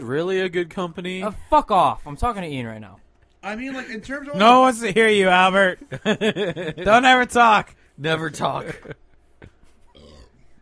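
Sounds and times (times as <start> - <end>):
speech: 0.0 - 9.0
laughter: 3.7 - 7.3, 8.5 - 9.6
burp into the microphone: 9.9 - 10.4.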